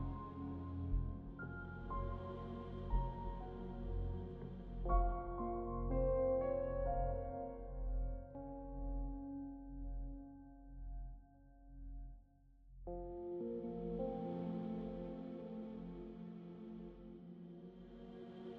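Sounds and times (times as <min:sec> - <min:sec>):
twisted thriller hybrid piano music: 0:00.0 - 0:10.6, 0:12.9 - 0:16.1.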